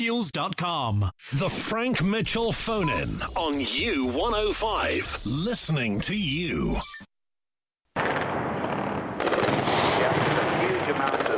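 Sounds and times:
speech: 0.0s - 7.1s
air defence anti-aircraft gunfire: 8.0s - 11.3s.

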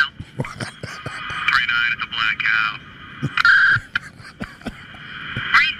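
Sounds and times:
tinny band-limited police radio chatter: 0.1s - 1.6s
laughter: 0.2s - 1.6s, 3.3s - 5.6s.

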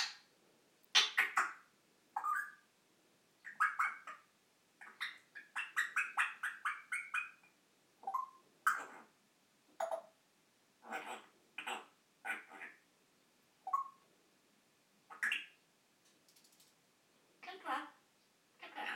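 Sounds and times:
African grey parrot imitating birds: 0.9s - 2.6s, 3.4s - 9.1s, 10.8s - 12.8s, 13.6s - 14.0s, 15.1s - 15.6s, 18.6s - 18.9s
African grey parrot talking: 1.0s - 1.6s, 2.2s - 2.6s, 3.4s - 9.1s, 10.8s - 12.8s, 13.7s - 14.0s, 15.1s - 15.6s, 17.4s - 18.0s, 18.6s - 18.9s.

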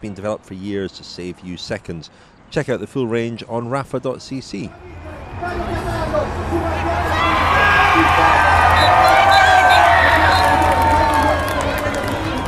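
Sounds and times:
speech: 0.0s - 6.7s, 8.0s - 9.2s
crowd cheering at a Giro d'Italia stage finish in Como: 4.8s - 12.4s
people whooping: 6.4s - 12.4s.

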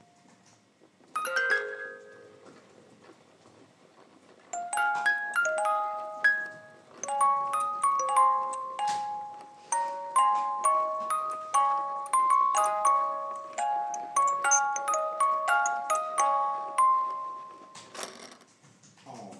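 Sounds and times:
music box: 1.1s - 2.6s, 4.5s - 18.4s.

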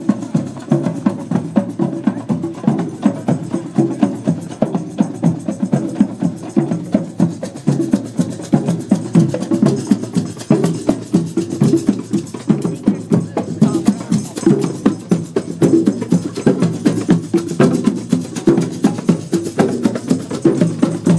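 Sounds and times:
drum circle in Asbury Park NJ: 0.0s - 21.1s.

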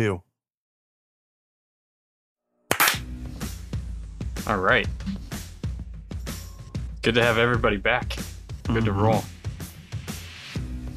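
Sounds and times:
speech: 0.0s - 0.3s, 4.5s - 5.3s, 7.0s - 9.3s
sync hand clap at start of recording: 2.7s - 3.1s.

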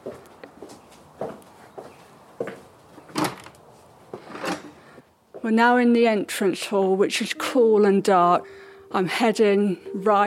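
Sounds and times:
soft footsteps: 0.0s - 4.3s
entrance door opening and closing: 3.1s - 3.6s, 4.2s - 4.8s
speech: 5.4s - 10.2s.

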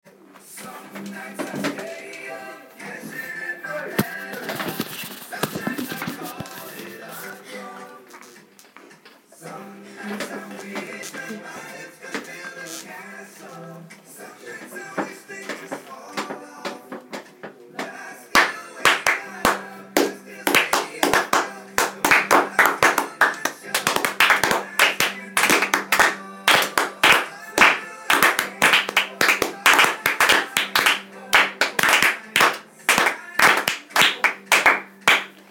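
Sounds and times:
clapping: 18.4s - 35.3s.

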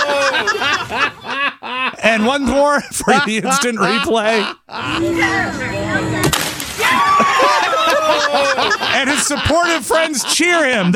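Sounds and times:
laughter: 0.0s - 10.9s
speech: 2.0s - 6.4s, 8.1s - 10.9s
diving board breaking under heavy diver: 6.2s - 8.0s.

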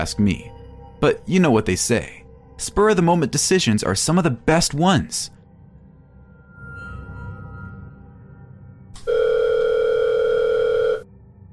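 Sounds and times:
speech: 0.0s - 5.4s
mobile phone ringing: 9.0s - 11.0s.

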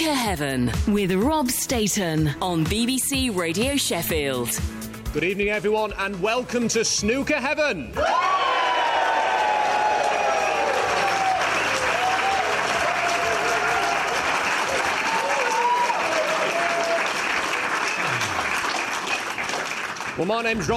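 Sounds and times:
speech: 0.1s - 8.3s, 20.2s - 20.7s
live audience applause at Sheffield Hallam University's Stoddart Building during a snooker show: 8.0s - 20.7s.

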